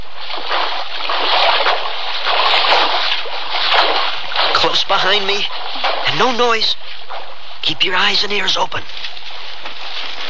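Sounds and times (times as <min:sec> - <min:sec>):
footsteps wading through water with wet feet: 0:00.0 - 0:07.6, 0:08.8 - 0:10.2
speech: 0:04.8 - 0:07.0, 0:07.6 - 0:09.1.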